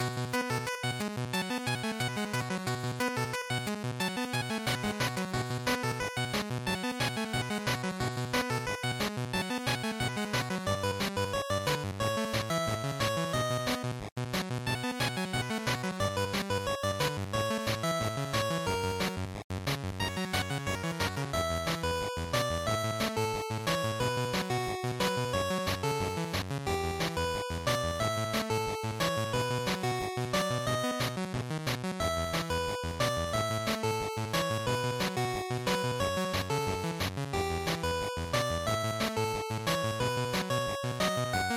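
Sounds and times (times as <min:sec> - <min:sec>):
racing stage background music loop: 0:00.0 - 0:41.5.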